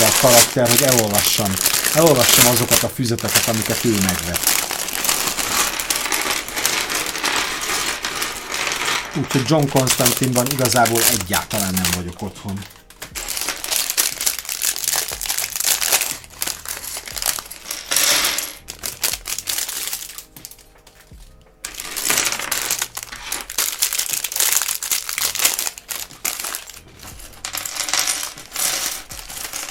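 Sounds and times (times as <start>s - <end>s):
small hard pieces clicking and rattling inside a packet: 0.0s - 20.6s, 21.6s - 29.7s
small plastic packet from a building set torn open and unwrapped: 0.0s - 20.7s, 21.6s - 29.7s
speech: 0.2s - 4.7s, 9.2s - 13.2s.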